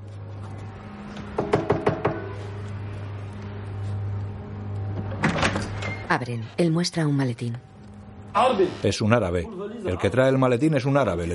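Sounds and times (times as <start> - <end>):
low steady hum: 0.0 - 10.2
knuckles knocking on the front door of a chalet: 1.4 - 2.4
speech: 6.1 - 7.7, 8.4 - 11.3.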